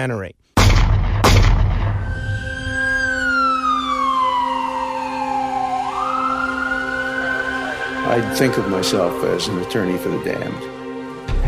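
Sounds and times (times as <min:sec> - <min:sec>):
speech: 0:00.0 - 0:00.8, 0:08.0 - 0:10.8
documentary trailer booming hit: 0:00.6 - 0:03.2
documentary trailer siren-like wail: 0:01.7 - 0:11.3.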